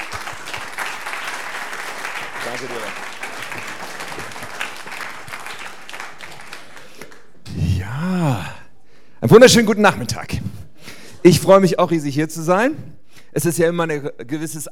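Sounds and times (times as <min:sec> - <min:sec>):
audience applause: 0:00.0 - 0:07.4
speech: 0:02.6 - 0:03.7, 0:09.2 - 0:10.5, 0:11.2 - 0:14.7.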